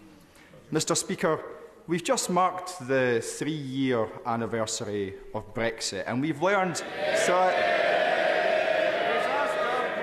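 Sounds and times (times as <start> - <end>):
speech: 0.7 - 8.0
parliament members cheering: 7.0 - 10.0.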